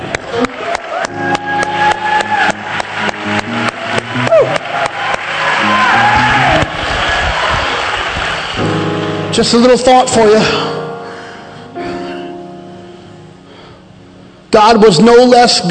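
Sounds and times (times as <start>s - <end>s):
audience clapping: 0.0s - 9.1s
speech: 9.4s - 10.7s, 14.6s - 15.6s.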